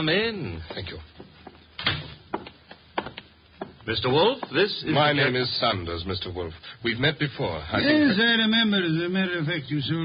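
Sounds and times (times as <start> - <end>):
speech: 0.0 - 1.2, 3.9 - 10.0
door closing with a solid thud: 1.8 - 2.2.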